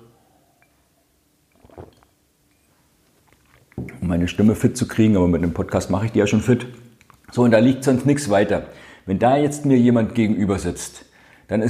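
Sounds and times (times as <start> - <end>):
sip and swallow of water: 1.5 - 2.2
speech: 3.8 - 11.6.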